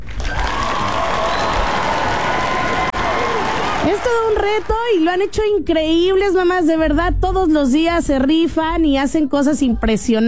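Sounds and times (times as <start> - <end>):
applause and standing ovation: 0.0 - 5.3
speech: 3.8 - 10.2.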